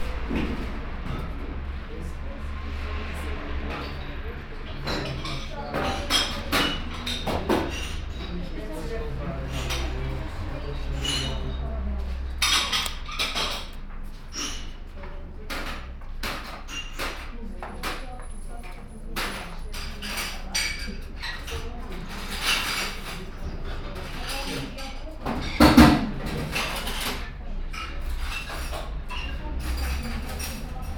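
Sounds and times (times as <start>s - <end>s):
cafe ambience in Lisbon: 0.0s - 30.9s.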